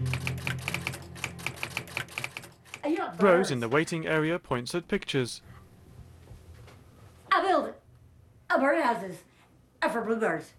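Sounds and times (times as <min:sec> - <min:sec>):
nurse typing on a keyboard in a reception office: 0:00.1 - 0:02.9
speech: 0:02.9 - 0:05.5, 0:08.5 - 0:09.3, 0:09.8 - 0:10.5.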